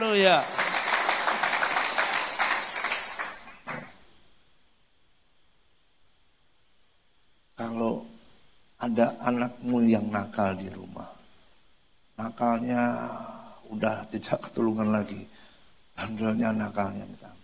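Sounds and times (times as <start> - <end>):
audience applause: 0.0 - 4.0
speech: 0.2 - 0.6, 9.0 - 11.1, 12.2 - 17.4.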